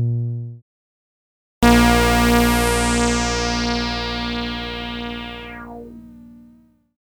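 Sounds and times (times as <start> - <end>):
Moog Modular synthesizer: 1.7 - 6.2.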